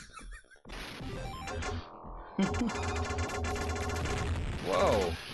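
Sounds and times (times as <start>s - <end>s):
Sega Genesis sound chip game audio: 1.0s - 5.2s
speech: 2.4s - 3.3s.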